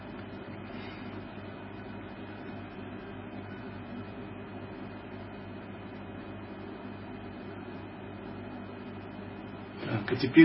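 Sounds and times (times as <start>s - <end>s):
air conditioner humming: 0.0s - 10.4s.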